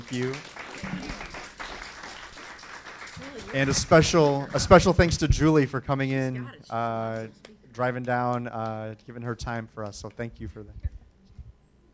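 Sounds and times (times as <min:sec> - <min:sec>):
audience applause: 0:00.0 - 0:05.2
speech: 0:00.1 - 0:01.3, 0:03.3 - 0:10.9.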